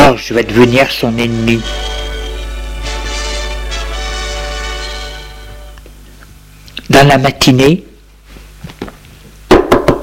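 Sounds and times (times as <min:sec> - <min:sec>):
speech: 0:00.2 - 0:02.0, 0:06.9 - 0:07.9
knocking on a door: 0:09.5 - 0:10.0.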